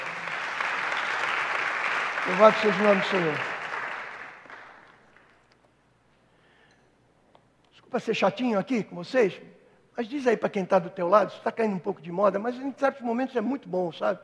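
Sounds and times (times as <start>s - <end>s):
audience applause: 0.0s - 5.3s
speech: 2.3s - 3.5s, 7.9s - 14.2s.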